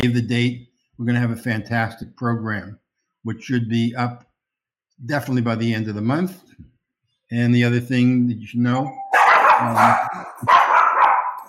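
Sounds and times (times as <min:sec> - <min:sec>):
speech: 0:00.0 - 0:04.3, 0:05.0 - 0:06.7, 0:07.3 - 0:09.0, 0:09.6 - 0:10.6
dog barking during an online webinar: 0:09.1 - 0:11.4.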